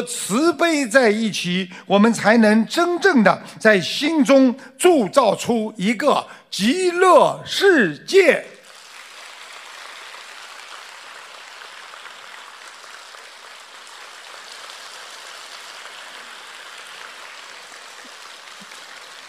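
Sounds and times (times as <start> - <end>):
speech: 0.0 - 8.5
audience applause: 8.6 - 19.2.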